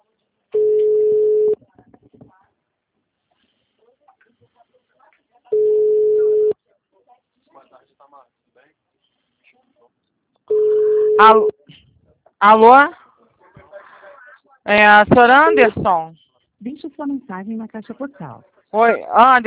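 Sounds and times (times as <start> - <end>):
telephone ringback tone while placing a call: 0.6 - 1.6, 5.5 - 6.5, 10.5 - 11.5
speech: 11.2 - 11.5, 12.4 - 13.0, 14.7 - 19.4.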